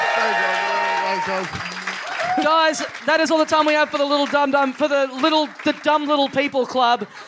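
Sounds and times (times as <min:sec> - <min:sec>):
cheering whoop: 0:00.0 - 0:02.9
live audience applause: 0:00.0 - 0:07.2
speech: 0:01.2 - 0:01.7, 0:02.3 - 0:07.2.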